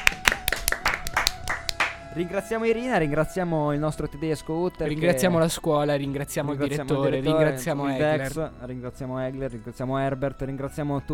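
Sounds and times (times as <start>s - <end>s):
audience clapping: 0.0s - 2.0s
speech: 2.1s - 11.1s.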